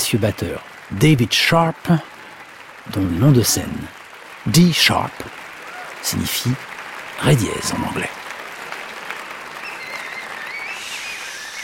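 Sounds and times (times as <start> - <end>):
audience applause at a jazz concert: 0.0 - 11.6
speech: 0.1 - 2.2, 2.8 - 5.4, 6.0 - 8.2
faint whistles: 9.6 - 11.6.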